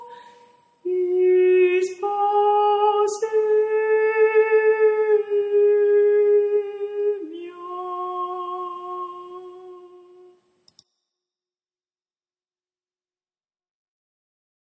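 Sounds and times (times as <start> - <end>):
tenor singing: 0.9 - 10.3.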